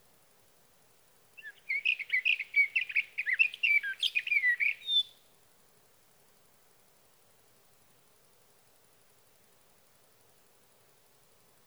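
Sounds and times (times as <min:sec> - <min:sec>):
sage thrasher song: 0:01.4 - 0:05.2.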